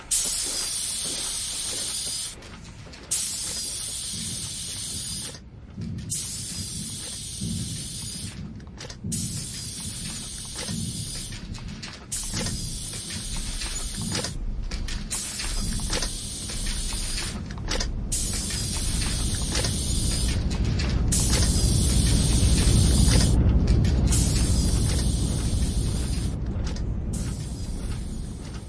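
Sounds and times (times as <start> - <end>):
industrial sounds: 0.0 - 28.6.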